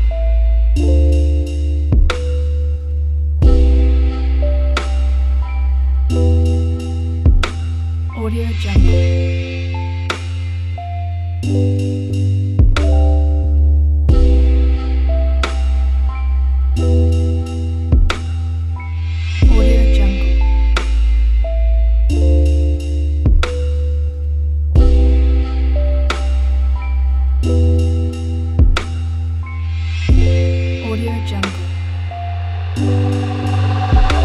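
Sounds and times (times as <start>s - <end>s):
chillout soundscape: 0.0s - 34.2s.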